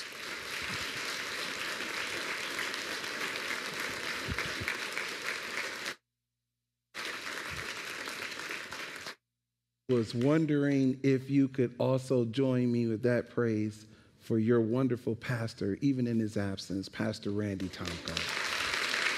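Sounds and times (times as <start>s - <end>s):
audience applause welcoming a bishop as speaker: 0.0s - 6.0s, 7.0s - 9.2s, 17.8s - 19.1s
speech: 9.9s - 18.4s.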